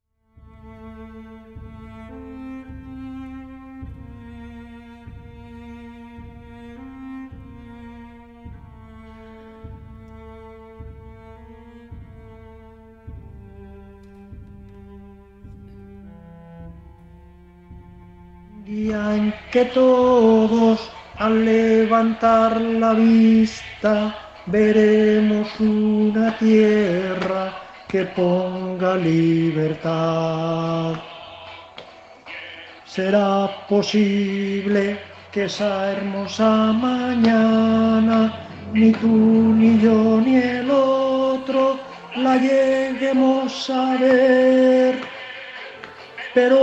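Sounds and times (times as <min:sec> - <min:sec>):
people singing: 0:18.6 - 0:46.6.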